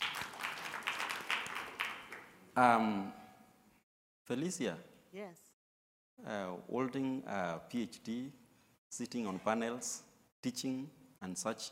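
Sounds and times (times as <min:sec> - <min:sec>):
audience applause: 0:00.0 - 0:02.3
speech: 0:02.6 - 0:03.2, 0:04.3 - 0:05.4, 0:06.2 - 0:11.7.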